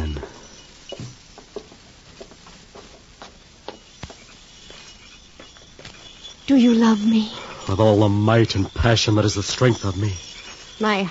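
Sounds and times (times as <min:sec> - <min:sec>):
footsteps of people walking together: 0:00.0 - 0:06.1
speech: 0:06.5 - 0:11.0.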